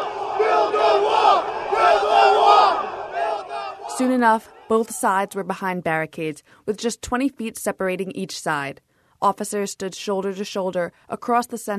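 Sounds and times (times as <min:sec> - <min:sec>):
protest crowd shouting: 0:00.0 - 0:05.3
speech: 0:04.0 - 0:11.7.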